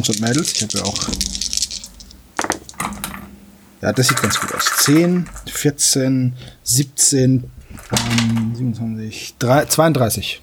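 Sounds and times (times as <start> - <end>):
speech: 0.0 - 1.6, 3.8 - 10.4
dice being rolled: 0.0 - 2.9, 4.1 - 5.6.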